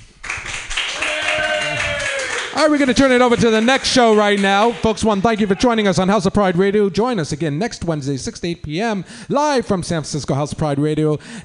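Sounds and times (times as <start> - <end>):
round of applause: 0.2 - 5.8
speech: 2.6 - 11.4.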